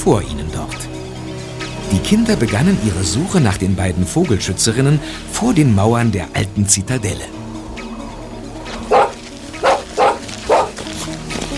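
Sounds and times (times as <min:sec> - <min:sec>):
speech: 0:00.0 - 0:00.4, 0:01.9 - 0:07.4
dog barking: 0:08.7 - 0:10.8.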